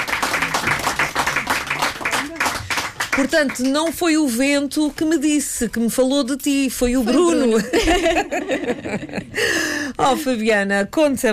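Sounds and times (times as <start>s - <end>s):
crowd applause: 0.0s - 3.8s
speech: 3.2s - 11.3s
laughter: 7.1s - 9.5s.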